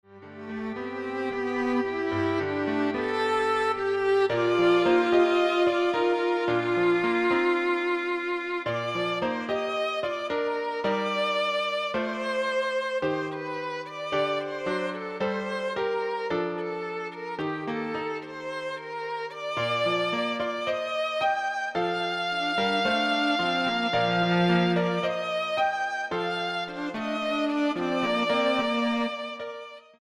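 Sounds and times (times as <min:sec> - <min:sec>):
piano trio: 0:00.4 - 0:29.6.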